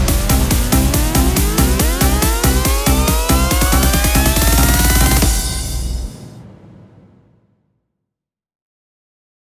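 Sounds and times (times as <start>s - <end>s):
electro music: 0.0s - 6.4s.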